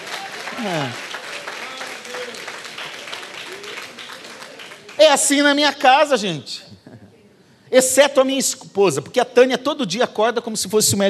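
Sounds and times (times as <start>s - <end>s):
faint cheers: 0.0s - 4.2s
audience applauding: 0.0s - 5.5s
speech: 0.6s - 1.0s, 5.0s - 6.8s, 7.7s - 11.0s.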